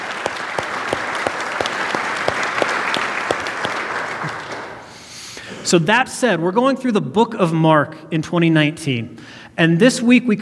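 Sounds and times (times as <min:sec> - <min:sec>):
audience clapping: 0:00.0 - 0:04.9
speech: 0:05.7 - 0:10.4.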